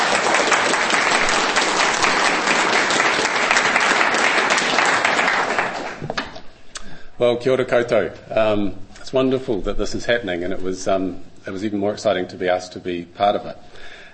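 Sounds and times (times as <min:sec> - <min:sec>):
audience applause: 0:00.0 - 0:06.4
speech: 0:07.2 - 0:13.9.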